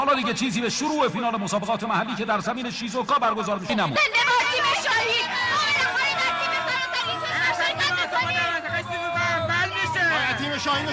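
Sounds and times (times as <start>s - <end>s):
speech: 0.0s - 6.1s, 10.4s - 10.9s
stadium crowd of rival fans cheering at a local football final in Shizuoka: 4.0s - 10.9s.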